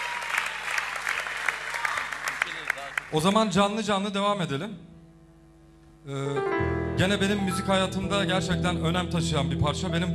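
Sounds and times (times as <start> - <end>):
audience applause: 0.0 - 3.2
speech: 3.1 - 4.9, 6.0 - 10.1.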